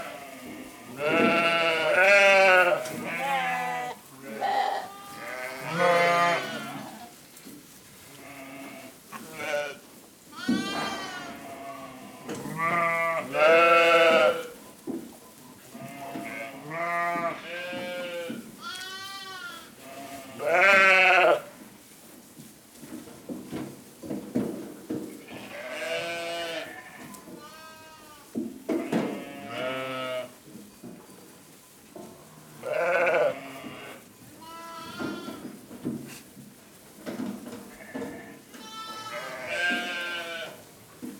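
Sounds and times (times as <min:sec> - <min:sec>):
sheep bleating: 0:00.0 - 0:07.2, 0:08.1 - 0:14.5, 0:15.7 - 0:21.5, 0:25.3 - 0:30.3, 0:32.6 - 0:35.4, 0:37.8 - 0:40.6.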